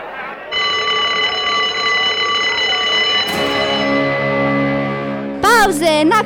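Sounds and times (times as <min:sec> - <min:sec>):
jingle: 0:00.6 - 0:06.1.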